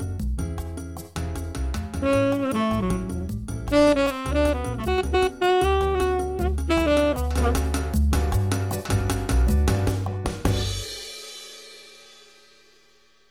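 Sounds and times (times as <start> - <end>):
songo jazz music: 0.6 - 10.9.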